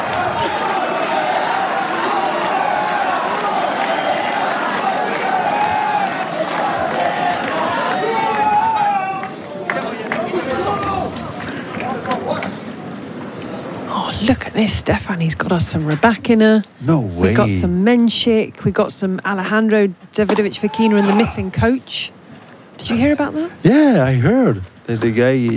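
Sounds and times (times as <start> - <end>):
tennis crowd cheering wildly: 0.0 - 12.2
speech: 14.6 - 22.2, 22.8 - 25.5.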